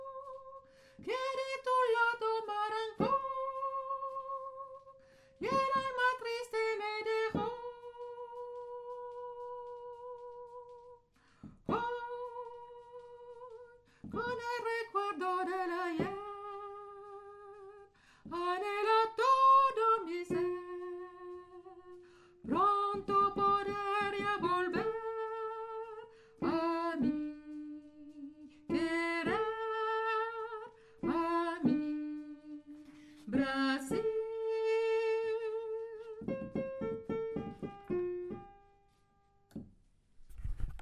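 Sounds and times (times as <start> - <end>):
Brazilian soprano singing: 0.0 - 11.1, 11.7 - 38.6.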